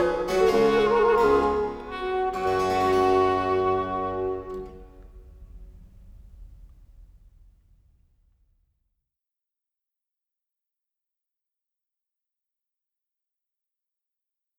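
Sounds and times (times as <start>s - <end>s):
minuet and trio music: 0.0s - 5.6s.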